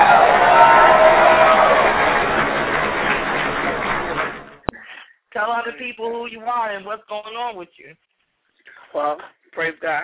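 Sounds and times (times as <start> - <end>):
audience applause: 0.0 - 4.7
speech: 5.8 - 8.2, 8.9 - 10.0.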